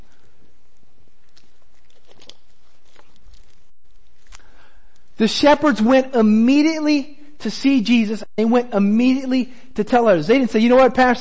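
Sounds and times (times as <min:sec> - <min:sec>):
person drinking water: 0:00.0 - 0:05.2
speech: 0:05.2 - 0:11.1.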